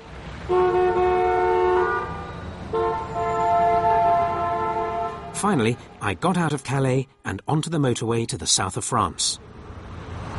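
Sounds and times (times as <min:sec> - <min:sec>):
busy town traffic in Calais: 0:00.0 - 0:10.3
car horns honking: 0:00.4 - 0:05.7
speech: 0:05.4 - 0:09.6.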